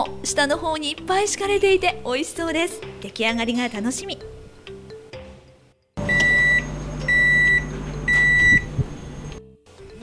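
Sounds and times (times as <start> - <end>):
speech: 0.0 - 4.4
oven beeps signalling end of baking: 6.0 - 9.4
oven fan hum: 6.0 - 9.4.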